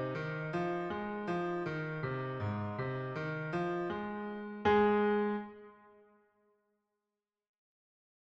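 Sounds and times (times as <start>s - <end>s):
piano: 0.0s - 6.2s.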